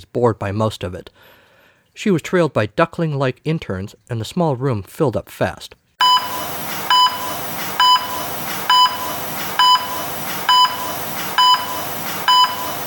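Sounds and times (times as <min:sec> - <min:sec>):
speech: 0:00.0 - 0:01.4, 0:02.0 - 0:05.8
medical monitor beeping: 0:06.0 - 0:12.8.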